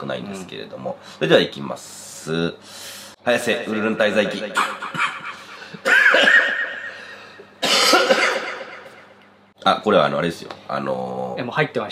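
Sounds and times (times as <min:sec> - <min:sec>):
speech: 0:00.0 - 0:05.1, 0:09.6 - 0:11.8
harsh raspy coughing: 0:04.6 - 0:09.0.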